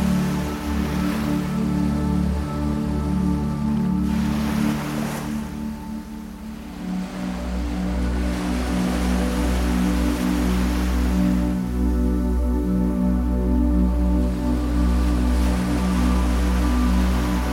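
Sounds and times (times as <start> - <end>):
17Hz binaural beats low droning tone: 0.0 - 17.5
ocean waves: 0.0 - 17.5.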